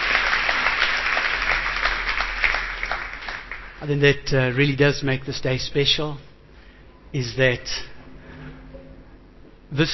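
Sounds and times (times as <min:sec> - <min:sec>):
audience applause: 0:00.0 - 0:03.9
speech: 0:03.8 - 0:06.3, 0:07.1 - 0:07.9, 0:09.7 - 0:09.9.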